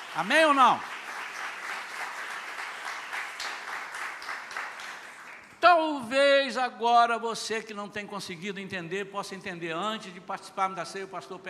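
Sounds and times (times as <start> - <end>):
audience applause: 0.0 - 5.5
speech: 0.2 - 0.9, 5.7 - 11.4.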